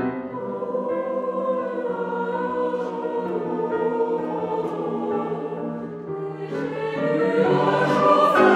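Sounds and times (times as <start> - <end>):
four-voice vocal chanson: 0.2 - 8.5.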